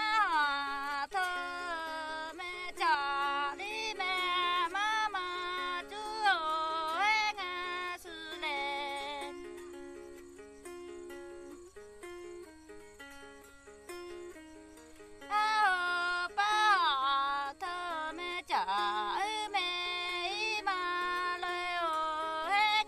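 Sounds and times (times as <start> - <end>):
Red Lahu woman singing a song: 0.0 - 9.8, 14.9 - 22.8
lute accompaniment: 0.0 - 22.8.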